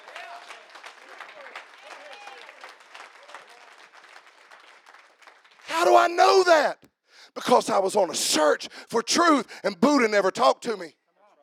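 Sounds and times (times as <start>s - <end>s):
audience clapping hands: 0.0s - 6.5s
speech: 6.0s - 6.8s, 7.4s - 11.0s.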